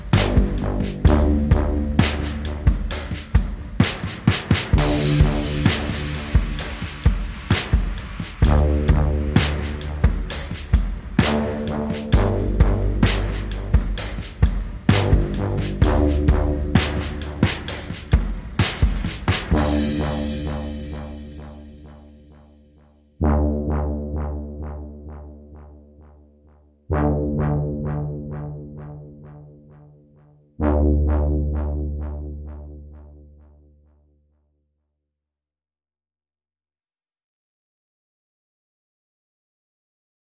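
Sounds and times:
drums: 0.0s - 22.5s
bass: 0.0s - 34.5s.

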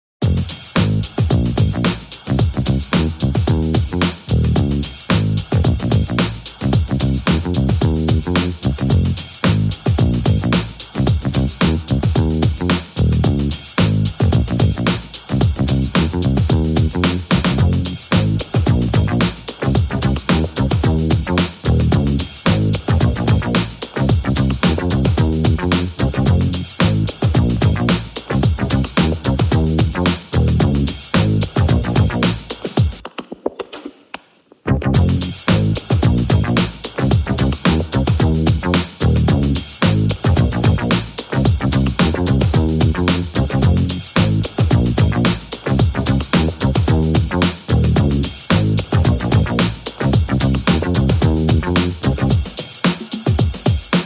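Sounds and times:
bass: 0.2s - 32.9s, 34.7s - 52.9s
drums: 0.2s - 54.0s.

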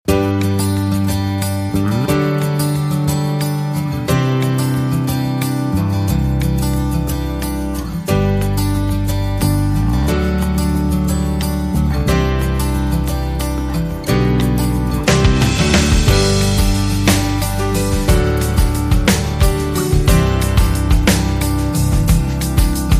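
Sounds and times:
rhythm guitar: 0.1s - 22.9s.

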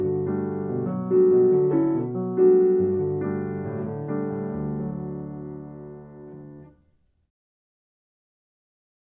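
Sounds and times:
solo piano: 0.0s - 7.3s.

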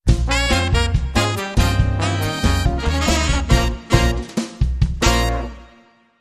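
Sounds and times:
Latin brass: 0.1s - 6.1s.

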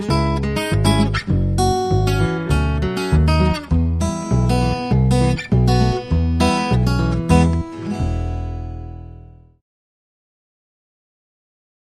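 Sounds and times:
ragtime blues music: 0.0s - 9.0s.

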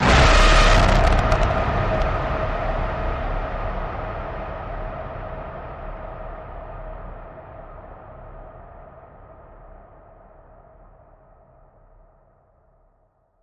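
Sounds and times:
blast: 0.0s - 3.5s.

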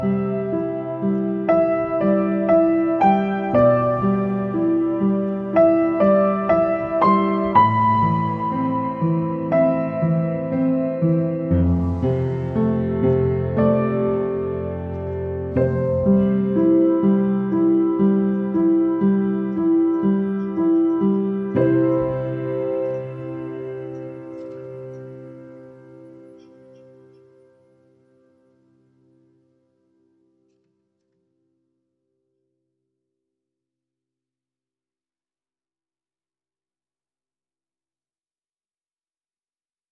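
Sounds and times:
solo piano: 0.0s - 30.3s.

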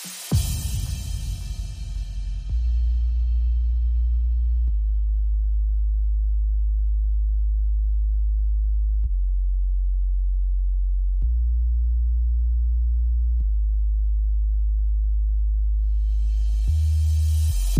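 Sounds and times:
drums: 0.0s - 2.8s
bass: 0.3s - 17.7s.

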